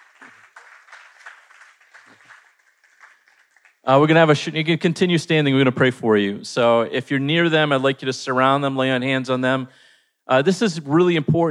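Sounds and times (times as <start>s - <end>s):
audience applauding group leaders: 0.0s - 3.8s
speech: 3.8s - 11.4s.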